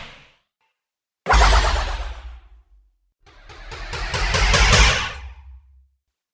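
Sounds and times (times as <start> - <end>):
sci-fi percussive hits: 1.3 - 5.9.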